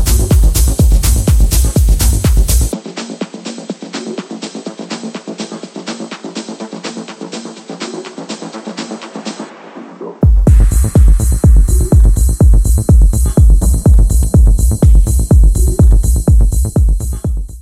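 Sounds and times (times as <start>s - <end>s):
deep kick drum: 0.0s - 2.8s, 10.2s - 17.5s.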